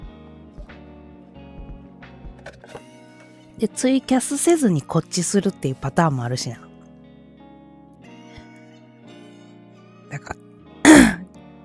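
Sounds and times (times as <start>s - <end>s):
speech: 3.6s - 6.7s
throat clearing: 10.9s - 11.3s.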